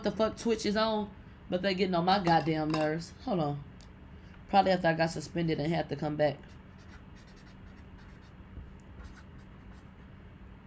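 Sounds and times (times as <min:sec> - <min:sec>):
speech: 0:00.0 - 0:03.7, 0:04.5 - 0:06.6
Sharpie marker writing notes: 0:06.5 - 0:08.4, 0:09.0 - 0:10.0.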